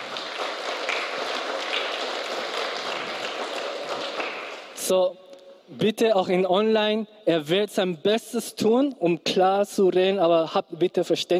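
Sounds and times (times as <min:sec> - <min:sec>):
audience applause: 0:00.0 - 0:04.8
speech: 0:04.9 - 0:11.3.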